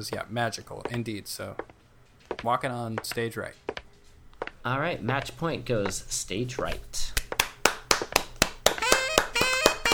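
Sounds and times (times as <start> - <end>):
speech: 0.0 - 1.7, 2.4 - 3.7, 4.6 - 7.2
light tennis-style clapping: 7.1 - 9.9.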